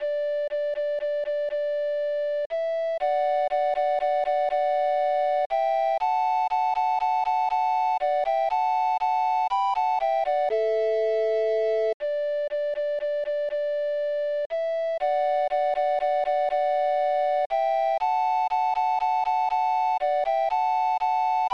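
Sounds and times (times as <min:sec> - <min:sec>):
minuet: 0:00.0 - 0:21.5.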